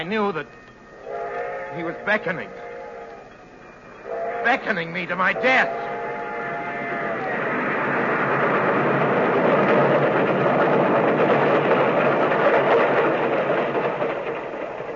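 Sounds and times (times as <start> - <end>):
speech: 0.0 - 0.7, 1.7 - 2.7, 4.4 - 5.8
train bell: 0.0 - 7.8
approaching train: 0.0 - 14.9
train whistle: 0.9 - 3.4, 4.0 - 7.9.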